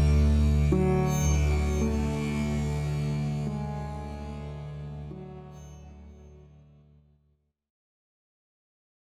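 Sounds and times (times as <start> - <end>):
sitar: 0.0 - 7.2.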